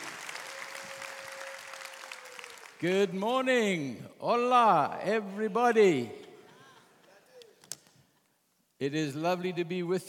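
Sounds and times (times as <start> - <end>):
church congregation applauding a guest speaker: 0.0 - 3.2
speech: 2.8 - 6.2, 8.8 - 10.0.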